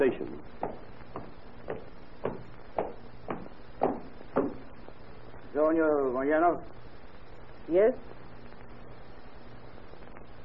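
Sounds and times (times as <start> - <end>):
footsteps approaching: 0.0 - 4.9
speech: 5.7 - 6.8, 7.7 - 8.1.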